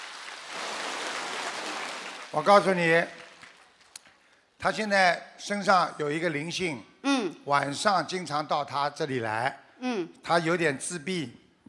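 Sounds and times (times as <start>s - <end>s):
audience applause at a live event: 0.0s - 4.0s
speech: 2.3s - 3.2s, 4.6s - 11.4s.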